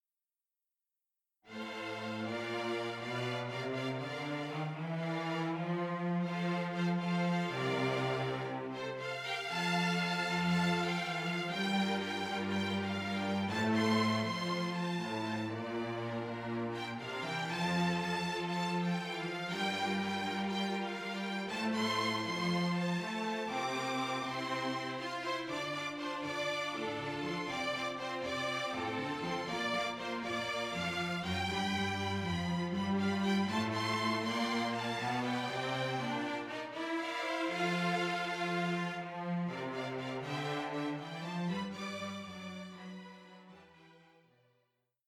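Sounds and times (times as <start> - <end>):
string orchestra: 1.5 - 44.3.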